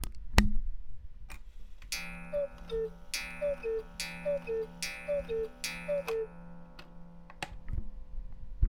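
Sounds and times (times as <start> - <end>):
eight day cuckoo clock call: 1.9 - 8.1.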